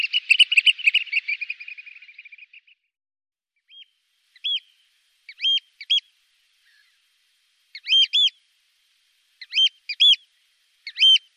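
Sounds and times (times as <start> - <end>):
Eurasian oystercatcher piping: 0.0 - 2.6, 3.7 - 7.1, 7.7 - 8.4, 9.4 - 11.3.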